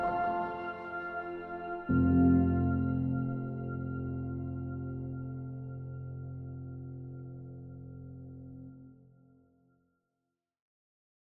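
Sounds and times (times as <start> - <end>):
cinematic orchestral cover: 0.0 - 5.3.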